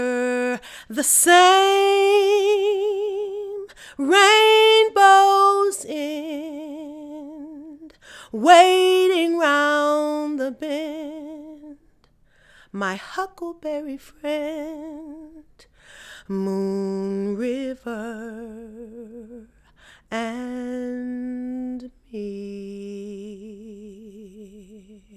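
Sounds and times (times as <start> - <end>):
woman singing: 0.0 - 11.9, 12.7 - 25.1.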